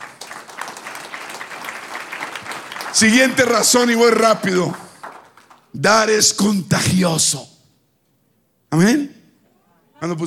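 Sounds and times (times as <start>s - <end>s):
applause: 0.0s - 5.8s
speech: 3.0s - 4.8s, 5.7s - 7.5s, 8.7s - 9.1s, 10.0s - 10.2s.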